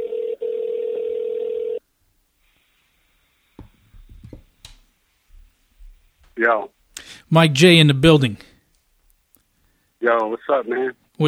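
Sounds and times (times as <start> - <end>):
telephone ringback tone: 0.0 - 1.8
soft clicks and rustles: 3.5 - 6.4
speech: 6.4 - 8.5, 10.0 - 11.2.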